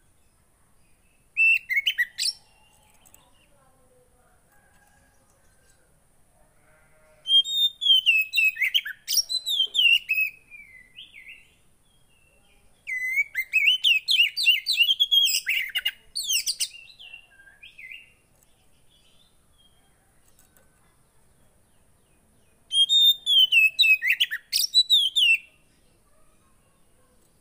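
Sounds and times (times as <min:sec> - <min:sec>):
oriental magpie-robin song of whistles, chirps and harsh notes: 0:01.4 - 0:02.8, 0:07.3 - 0:18.2, 0:22.7 - 0:25.6.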